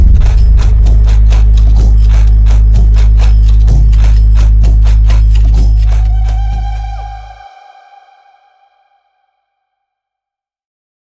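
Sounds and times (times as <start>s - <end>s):
Brazilian phonk music with boosted bass: 0.0s - 7.7s.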